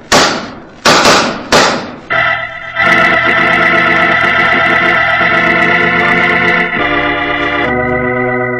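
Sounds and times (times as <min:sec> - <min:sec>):
revolver gunshots: 0:00.0 - 0:02.4
sustained orchestral chord: 0:02.1 - 0:08.5.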